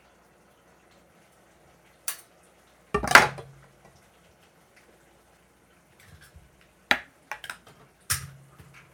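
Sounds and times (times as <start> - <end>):
tomato sauce bubbling in a pot: 0.0 - 8.9.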